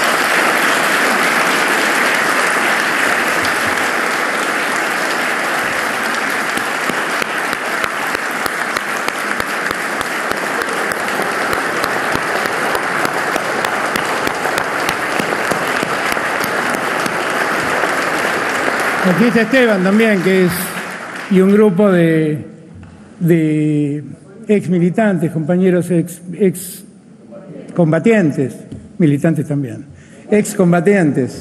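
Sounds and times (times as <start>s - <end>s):
audience applause: 0.0s - 22.0s
speech: 19.2s - 20.7s, 21.3s - 22.6s, 23.2s - 26.8s, 27.8s - 31.3s.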